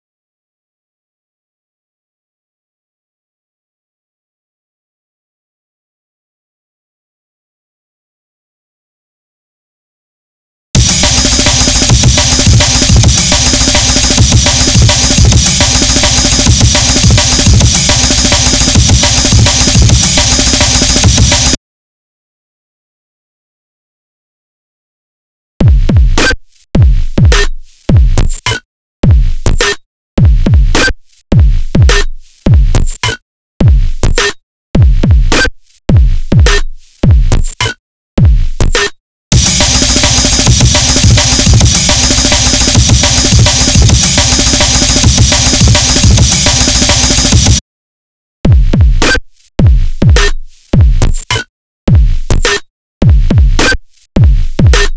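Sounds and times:
drums: 0:10.8 - 0:21.6, 0:25.6 - 0:47.6, 0:48.5 - 0:54.9.

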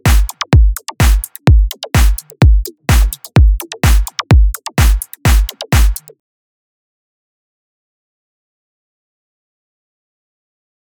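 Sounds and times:
drums: 0:00.0 - 0:06.1.

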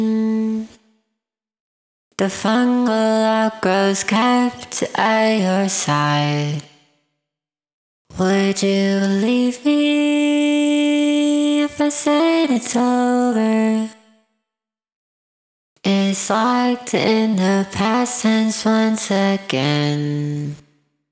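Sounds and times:
vocals: 0:00.0 - 0:00.8, 0:02.1 - 0:06.8, 0:08.1 - 0:14.2, 0:15.8 - 0:20.7.

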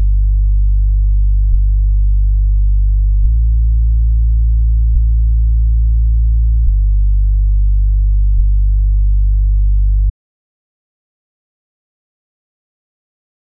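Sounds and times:
bass: 0:00.0 - 0:10.2.

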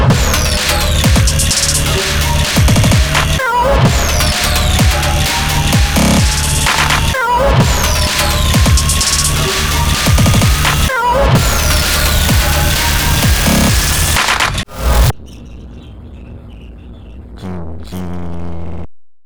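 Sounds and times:
128 bpm instrumental music: 0:00.1 - 0:15.1.

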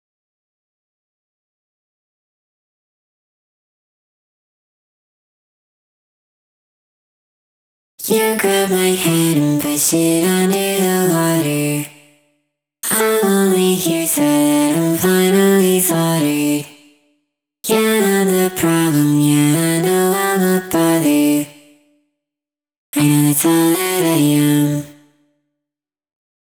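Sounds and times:
vocals: 0:08.0 - 0:12.2, 0:12.8 - 0:17.0, 0:17.6 - 0:21.8, 0:23.0 - 0:25.1.

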